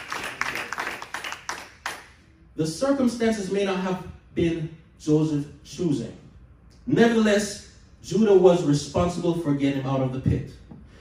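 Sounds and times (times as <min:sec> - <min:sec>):
audience clapping hands: 0:00.0 - 0:02.2
speech: 0:02.6 - 0:06.2, 0:06.9 - 0:10.6.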